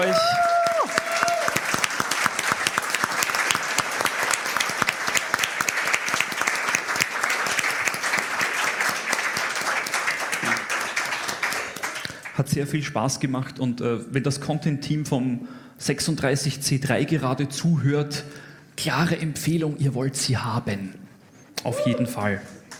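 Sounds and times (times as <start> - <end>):
audience applause: 0.0 - 12.4
speech: 12.6 - 21.0, 21.6 - 22.5.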